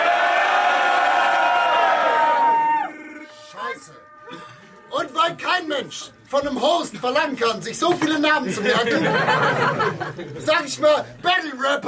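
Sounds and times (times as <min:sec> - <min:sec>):
live crowd cheering and whooping: 0:00.0 - 0:05.2
voices shouting above the crowd: 0:00.0 - 0:06.2
speech: 0:05.8 - 0:11.8
laughter: 0:08.0 - 0:10.5.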